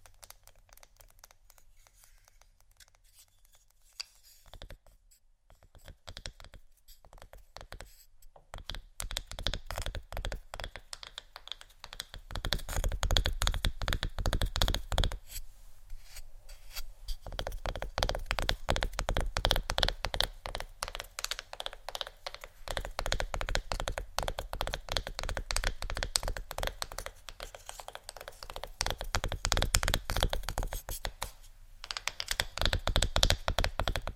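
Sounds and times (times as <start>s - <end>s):
fast tapping on assorted surfaces: 5.7s - 7.8s, 8.4s - 15.2s, 17.2s - 34.1s.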